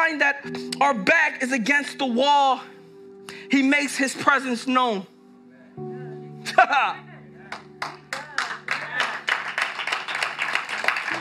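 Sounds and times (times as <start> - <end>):
speech: 0.1 - 5.1, 6.5 - 7.0
low sustained musical tones: 0.4 - 9.0
audience clapping in a steady rhythm: 7.5 - 11.1.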